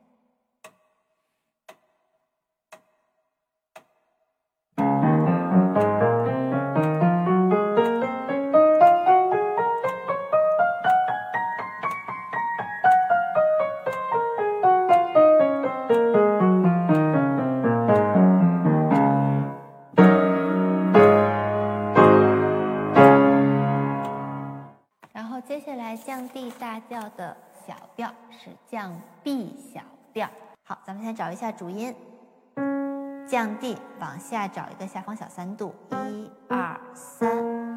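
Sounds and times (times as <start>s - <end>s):
piano playing a finger exercise: 4.8s - 24.8s, 32.6s - 34.4s, 35.9s - 37.7s
speech: 31.1s - 32.1s, 33.3s - 37.7s.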